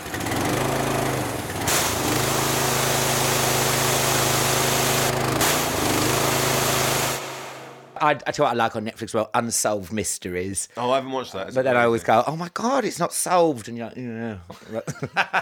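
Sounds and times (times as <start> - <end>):
jet wash pressure washer running: 0.0 - 8.0
speech: 8.0 - 15.4
laughter: 14.3 - 15.4.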